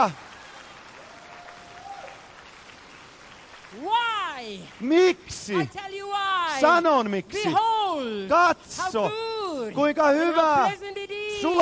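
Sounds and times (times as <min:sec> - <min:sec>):
speech: 0:00.0 - 0:00.3, 0:03.7 - 0:11.6
vast congregation applauding at an evangelist's mass rally: 0:00.0 - 0:05.8.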